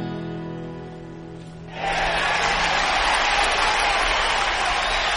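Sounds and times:
crowd applause sound effect: 0:01.7 - 0:05.1.

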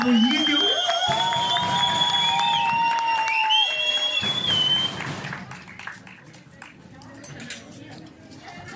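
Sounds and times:
audience applause: 0:00.0 - 0:06.7.

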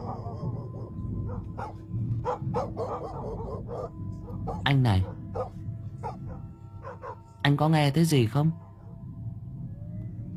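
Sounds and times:
dog barking: 0:00.0 - 0:07.2
speech: 0:04.7 - 0:05.2, 0:07.5 - 0:08.7.

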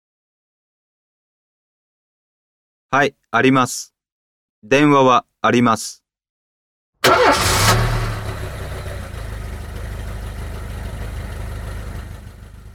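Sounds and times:
speech: 0:02.9 - 0:03.9, 0:04.6 - 0:06.0, 0:07.1 - 0:07.6
car engine cranking, starting and idling: 0:07.0 - 0:12.7.

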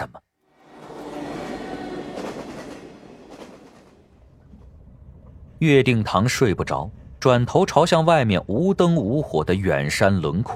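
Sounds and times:
train wheels clanking on rails: 0:00.6 - 0:05.4
speech: 0:05.6 - 0:10.5.

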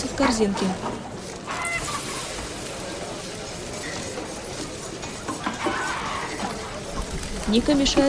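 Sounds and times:
busy kitchen noise: 0:00.0 - 0:08.0
chicken squawking and clucking as its head is chopped off: 0:01.4 - 0:02.4, 0:05.6 - 0:07.4.

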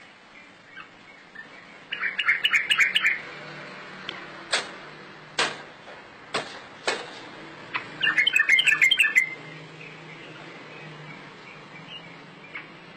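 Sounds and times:
bird chirping: 0:00.0 - 0:03.6, 0:07.7 - 0:12.9.

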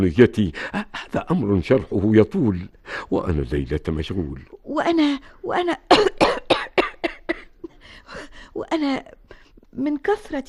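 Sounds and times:
speech: 0:00.0 - 0:06.2, 0:08.1 - 0:09.2, 0:09.8 - 0:10.4
person coughing in a harsh throaty fit: 0:05.9 - 0:07.8.

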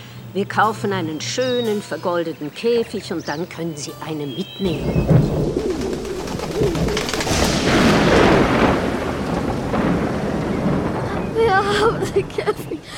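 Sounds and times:
speech: 0:00.4 - 0:05.6, 0:11.8 - 0:12.9
thunderstorm with thunder: 0:04.7 - 0:12.8.

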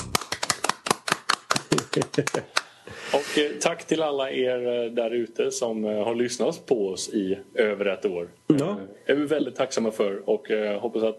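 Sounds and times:
hand clapping: 0:00.0 - 0:02.7
speech: 0:02.0 - 0:11.1.

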